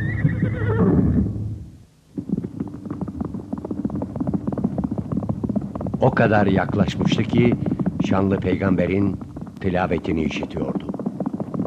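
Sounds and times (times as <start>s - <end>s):
horse being spurred on by its rider whinnying: 0.0s - 1.4s
rapid irregular thuds: 1.0s - 11.6s
speech: 6.0s - 10.8s.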